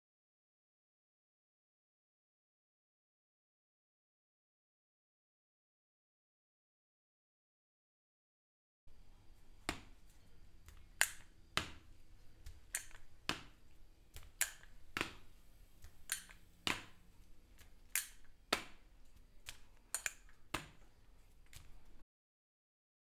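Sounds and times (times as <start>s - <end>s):
walking with crutches: 8.9s - 22.0s.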